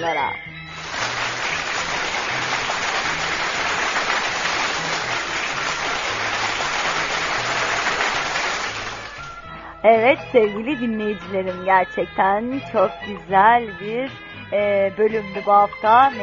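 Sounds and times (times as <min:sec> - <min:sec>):
speech: 0:00.0 - 0:00.6, 0:09.8 - 0:16.2
applause: 0:00.8 - 0:09.4.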